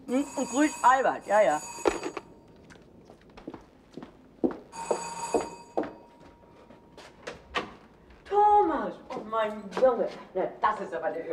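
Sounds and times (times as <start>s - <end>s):
speech: 0.1s - 1.8s, 9.4s - 11.3s
doorbell ringing: 0.1s - 2.5s, 4.7s - 6.6s.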